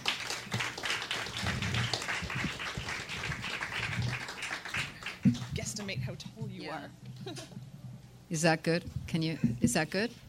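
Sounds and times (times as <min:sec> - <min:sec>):
audience applause: 0:00.0 - 0:05.5
speech: 0:05.2 - 0:07.6, 0:08.3 - 0:10.2.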